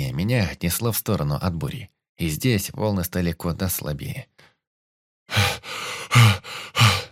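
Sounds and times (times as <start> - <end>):
speech: 0.1 - 4.4
loud heavy breathing after exertion: 5.3 - 7.1.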